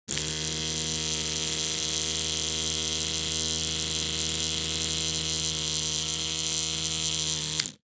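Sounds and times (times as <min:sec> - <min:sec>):
electric toothbrush: 0:00.0 - 0:07.8.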